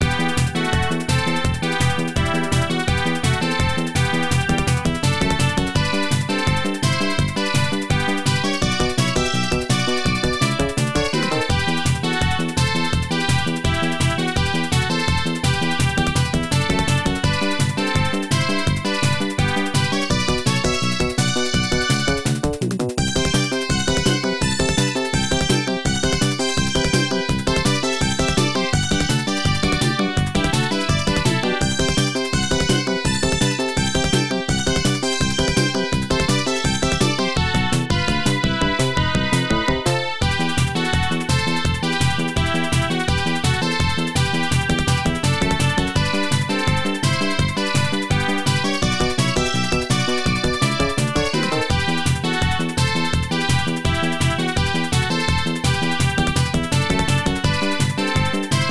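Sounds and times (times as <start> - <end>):
stage background music: 0.0 - 58.6.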